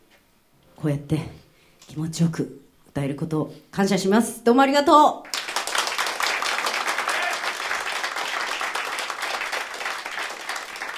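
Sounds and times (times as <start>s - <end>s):
speech: 0.8s - 5.4s
audience applause at a live concert: 5.3s - 10.9s.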